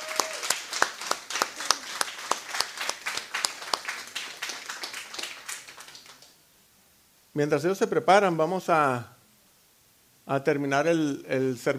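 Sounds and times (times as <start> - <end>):
crowd applauding: 0.0 - 6.4
speech: 7.4 - 9.1, 10.3 - 11.7.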